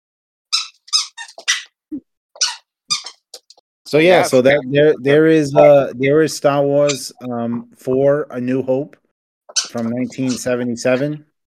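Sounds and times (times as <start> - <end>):
squeaky toy chomped by a dog: 0.5 - 1.8, 2.4 - 3.6, 6.8 - 7.2, 9.5 - 10.6
speech: 3.9 - 9.0, 9.7 - 11.3.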